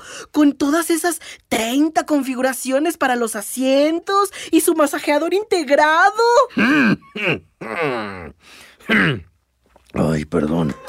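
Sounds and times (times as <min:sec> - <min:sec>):
speech: 0:00.3 - 0:09.3, 0:09.9 - 0:10.8
person in a Lincoln Aviator clearing their throat: 0:06.5 - 0:08.2, 0:08.8 - 0:09.3
laughter: 0:10.6 - 0:10.8.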